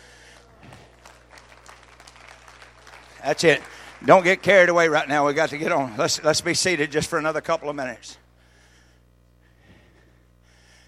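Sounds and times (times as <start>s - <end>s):
audience hand clapping: 0.3s - 6.9s
speech: 3.2s - 8.2s.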